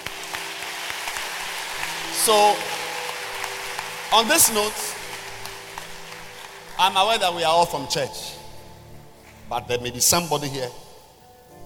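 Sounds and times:
crowd applauding: 0:00.0 - 0:07.9
speech: 0:02.3 - 0:02.8, 0:04.1 - 0:04.8, 0:06.8 - 0:08.4, 0:09.5 - 0:10.8.

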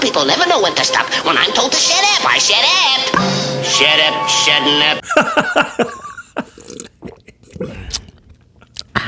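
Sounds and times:
speech: 0:00.2 - 0:06.5
laughter: 0:05.0 - 0:06.6
swallowing: 0:05.6 - 0:09.0
person sipping and gulping water from a plastic cup: 0:05.8 - 0:09.0.

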